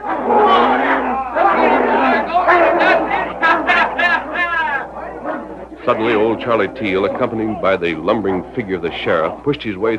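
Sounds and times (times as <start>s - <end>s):
crowd shouting around a dog fight: 0.0s - 8.5s
speech: 5.9s - 9.9s.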